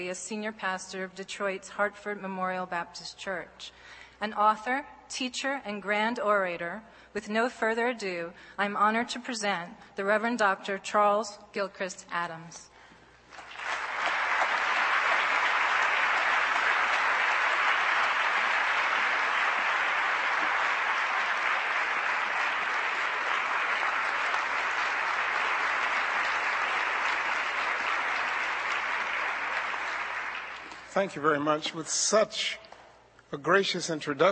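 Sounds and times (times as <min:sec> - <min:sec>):
speech: 0:00.0 - 0:12.7, 0:31.0 - 0:32.6, 0:33.3 - 0:34.3
audience applause: 0:13.3 - 0:31.0.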